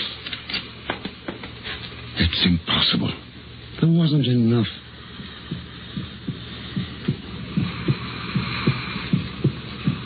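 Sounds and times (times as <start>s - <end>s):
faint hiss: 1.5s - 10.0s
speech: 2.2s - 4.8s
heartbeat heard through a stethoscope: 4.7s - 10.0s.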